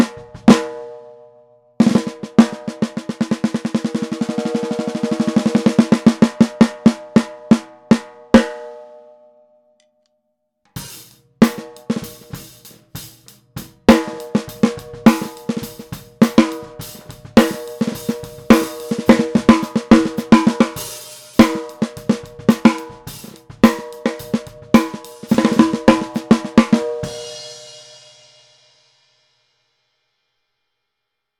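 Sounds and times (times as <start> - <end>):
mahogany 14x6.5 snare drum: 0.0 - 1.0, 1.8 - 8.7, 10.8 - 27.8.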